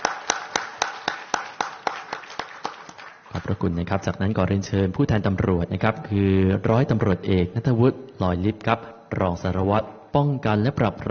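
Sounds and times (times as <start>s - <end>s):
audience applause: 0.0s - 3.6s
speech: 3.5s - 11.0s.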